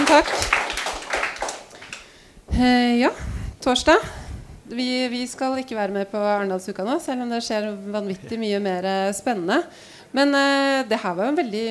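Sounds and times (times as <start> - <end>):
audience applause: 0.0 - 2.1
speech: 0.1 - 0.6, 2.6 - 11.6.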